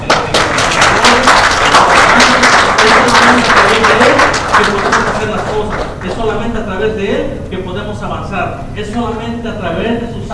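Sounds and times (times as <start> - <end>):
audience applause: 0.0 - 6.2
speech: 8.0 - 10.3.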